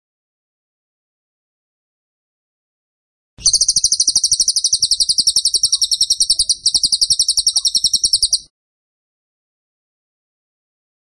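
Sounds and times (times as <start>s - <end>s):
bird trilling: 3.4s - 8.5s.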